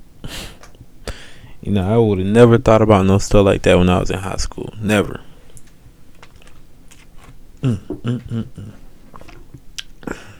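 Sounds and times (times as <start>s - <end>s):
person drinking water: 0.0s - 10.3s
speech: 1.6s - 5.3s, 7.6s - 8.8s.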